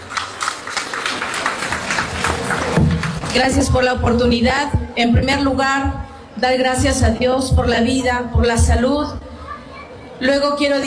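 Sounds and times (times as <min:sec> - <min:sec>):
audience applause: 0:00.0 - 0:03.5
speech: 0:03.3 - 0:09.2, 0:10.2 - 0:10.8.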